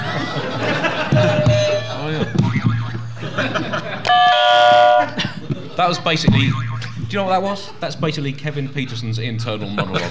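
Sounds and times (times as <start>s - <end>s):
voices chattering and chuckling: 0.0s - 4.1s, 5.0s - 8.8s, 9.4s - 10.1s
electronic buzzer: 1.1s - 1.9s, 4.1s - 5.2s
speech: 5.8s - 10.1s.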